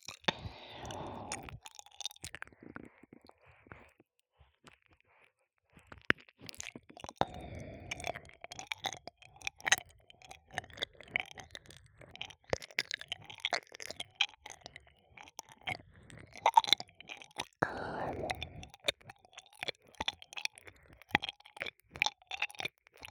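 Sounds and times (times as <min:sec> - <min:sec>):
ear licking: 0:00.1 - 0:02.2, 0:06.5 - 0:22.7.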